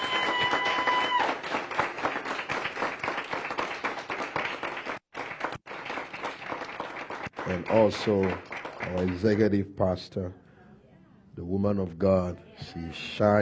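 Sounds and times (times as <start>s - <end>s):
crowd applauding: 0.0s - 9.4s
speech: 7.5s - 10.4s, 11.4s - 13.4s.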